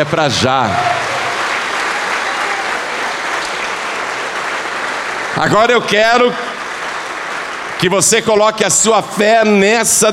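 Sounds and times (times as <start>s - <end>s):
speech: 0.0s - 1.0s, 5.4s - 6.4s, 7.8s - 10.1s
audience applause: 0.6s - 8.5s.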